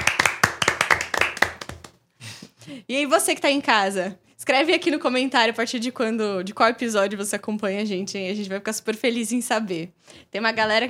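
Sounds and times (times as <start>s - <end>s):
several people clapping by hand: 0.0s - 2.0s
speech: 2.7s - 10.8s.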